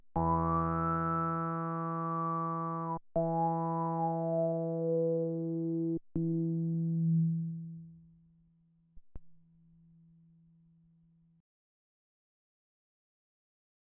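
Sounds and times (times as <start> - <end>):
saturated resonant filtered square wave synth: 0.2 - 8.1.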